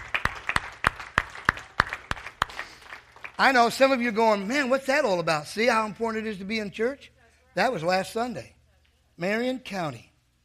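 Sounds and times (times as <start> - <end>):
crowd applause: 0.0 - 3.6
speech: 3.4 - 8.6, 9.2 - 10.1.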